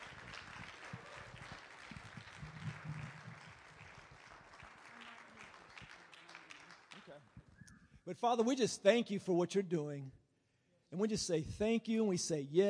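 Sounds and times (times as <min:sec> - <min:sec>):
audience applause: 0:00.0 - 0:07.4
speech: 0:08.1 - 0:10.2, 0:10.9 - 0:12.6.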